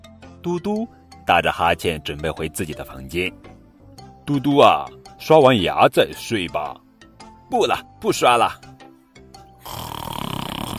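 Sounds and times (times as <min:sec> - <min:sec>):
speech: 0:00.4 - 0:03.5, 0:04.3 - 0:06.8, 0:07.5 - 0:08.7
child snoring: 0:09.6 - 0:10.7.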